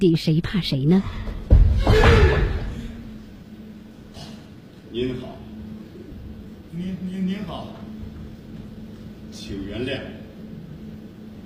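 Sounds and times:
speech: 0:00.0 - 0:02.4, 0:04.9 - 0:05.4, 0:06.8 - 0:07.8, 0:09.4 - 0:10.2
heavy door pushed open with low thud and rumble: 0:01.2 - 0:03.0.

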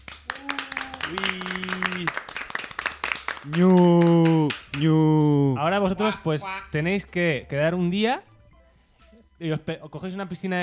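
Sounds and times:
audience applause: 0:00.0 - 0:04.8
speech: 0:01.1 - 0:02.2, 0:03.4 - 0:04.0, 0:04.8 - 0:08.3, 0:09.4 - 0:10.6.

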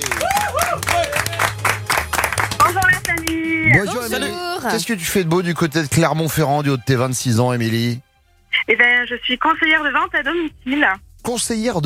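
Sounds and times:
applause for a listener in a French radio morning show studio: 0:00.0 - 0:04.2
speech: 0:03.8 - 0:11.8.

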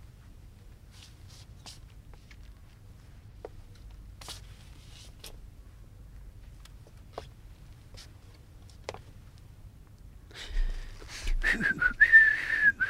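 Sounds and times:
rustling and shuffling: 0:00.0 - 0:09.6, 0:10.4 - 0:12.1
person whistling a short high note as a warning: 0:11.4 - 0:12.8.

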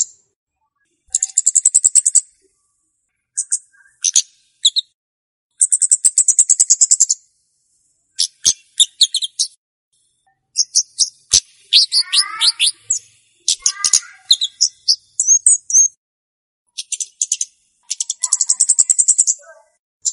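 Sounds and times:
flowerpecker lure song with high buzzy ticking trills: 0:01.2 - 0:02.4, 0:03.4 - 0:07.2, 0:10.3 - 0:16.0, 0:16.7 - 0:20.1.

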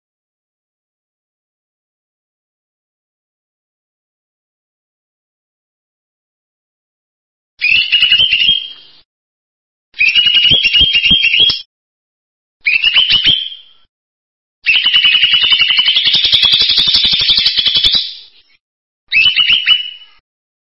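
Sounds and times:
bird song in buzzy trilled phrases: 0:07.6 - 0:09.1, 0:10.0 - 0:11.7, 0:12.6 - 0:13.9, 0:14.6 - 0:20.2.

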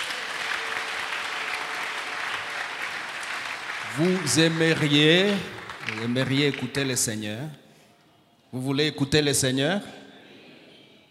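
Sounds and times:
church congregation applauding: 0:00.0 - 0:07.2
speech: 0:03.9 - 0:07.6, 0:08.5 - 0:10.0.

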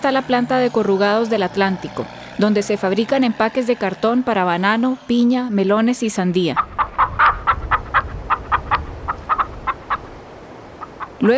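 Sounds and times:
speech: 0:00.0 - 0:06.7
low rumbling background: 0:00.0 - 0:11.2
chickens clucking at small rural plots: 0:06.4 - 0:11.3.

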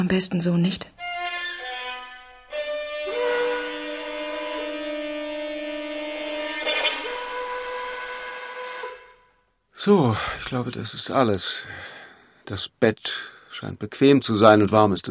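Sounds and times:
speech: 0:00.0 - 0:01.0, 0:09.8 - 0:11.9, 0:12.5 - 0:15.0
departing train's whistle blowing: 0:01.0 - 0:09.6.

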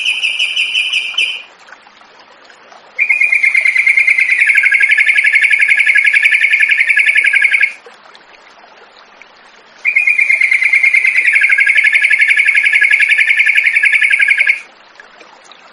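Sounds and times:
yellow-vented bulbul singing: 0:00.0 - 0:01.5, 0:03.0 - 0:07.7, 0:09.9 - 0:14.7.

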